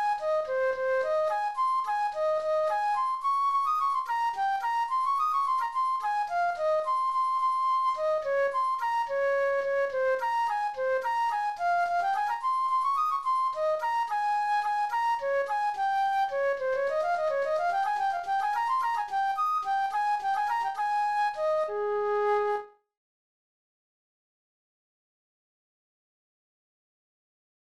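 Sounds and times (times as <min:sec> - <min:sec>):
flute: 0:00.0 - 0:22.8.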